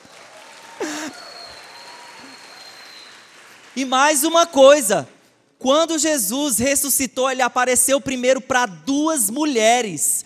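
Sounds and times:
audience applauding: 0.0s - 4.3s
laughter: 0.8s - 1.4s
speech: 3.8s - 10.2s.

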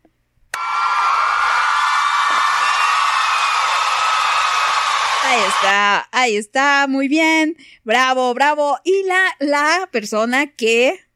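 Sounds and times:
applause: 0.6s - 5.8s
speech: 5.3s - 11.0s.

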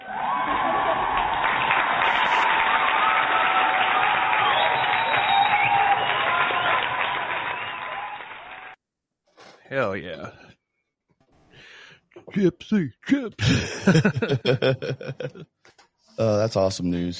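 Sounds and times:
laughter: 0.0s - 1.5s, 13.1s - 15.5s
applause: 0.0s - 8.8s
speech: 9.8s - 10.4s, 12.4s - 17.1s.

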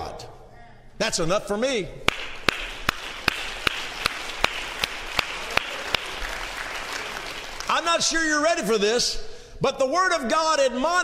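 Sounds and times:
speech: 1.0s - 2.3s, 8.0s - 11.0s
crowd clapping in unison: 2.1s - 8.0s.

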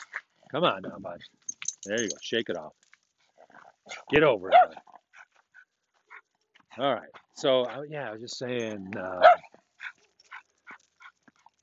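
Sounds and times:
speech: 0.5s - 2.8s, 3.9s - 4.8s, 6.8s - 9.5s
dog barking: 3.9s - 4.9s, 9.1s - 10.8s.

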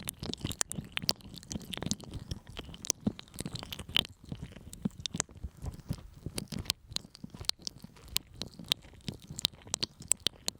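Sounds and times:
sticky honey wet tacky clicks and crackles: 0.0s - 10.5s.

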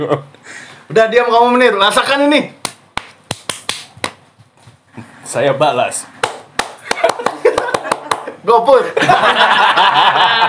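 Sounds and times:
speech: 0.0s - 2.6s, 5.3s - 6.1s, 8.4s - 10.4s
startling hand clap: 2.6s - 4.2s, 6.2s - 8.3s
laughter: 6.8s - 10.4s.

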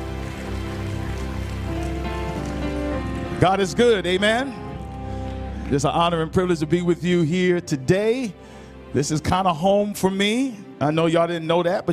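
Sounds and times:
crowd clapping hands in praise: 0.0s - 6.3s
speech: 3.4s - 4.6s, 5.7s - 11.9s.

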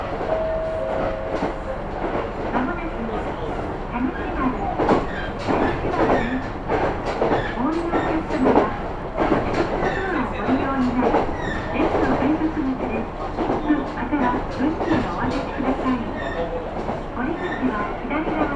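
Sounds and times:
Kyudai Main Line train running from Hita to Tanushimaru: 0.0s - 18.5s
brief high tone: 0.3s - 2.0s.

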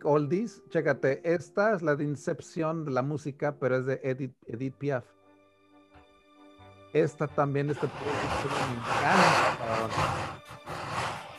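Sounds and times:
speech: 0.0s - 5.2s, 6.9s - 10.3s
person snoring: 7.7s - 11.3s.

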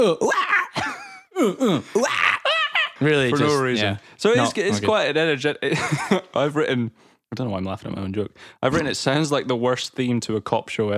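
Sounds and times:
speech: 0.0s - 0.5s, 1.4s - 2.3s, 3.0s - 10.9s
person imitating grunts and screeches: 0.0s - 2.6s
laughter: 1.9s - 3.7s, 5.7s - 6.4s.

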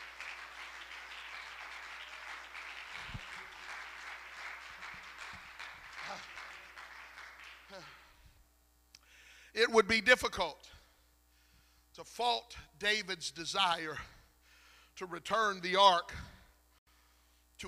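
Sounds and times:
vocal cheers: 0.0s - 7.8s
audience clapping hands: 0.0s - 8.2s
speech: 9.6s - 10.8s, 12.0s - 14.2s, 15.0s - 16.3s.

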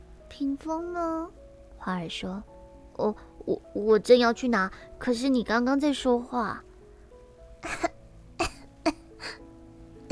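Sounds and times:
speech: 0.4s - 6.7s
person deliberately coughing as the rose in a reading of The Little Prince: 7.6s - 9.4s.

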